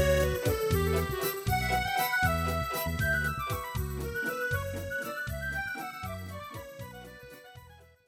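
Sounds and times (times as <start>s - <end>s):
brass music: 0.0s - 5.2s.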